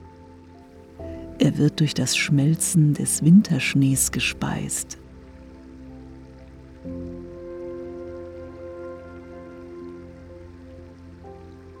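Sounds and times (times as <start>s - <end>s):
clear babbling brook: 1.0s - 5.0s
speech: 1.0s - 5.0s.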